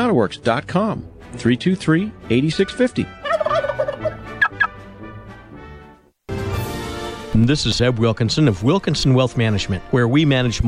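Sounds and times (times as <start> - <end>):
speech: 0.1 - 3.2, 7.4 - 10.6
turkeys gobbling: 2.7 - 4.8.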